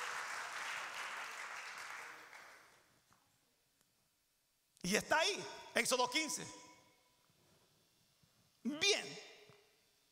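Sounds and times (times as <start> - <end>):
audience applauding: 0.0 - 2.8
speech: 4.8 - 6.6.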